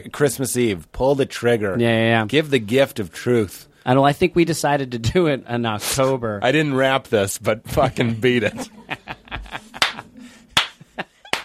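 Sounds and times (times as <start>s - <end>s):
speech: 0.0s - 9.0s
laughter: 7.8s - 11.4s
one person clapping: 9.8s - 10.0s, 10.6s - 11.4s.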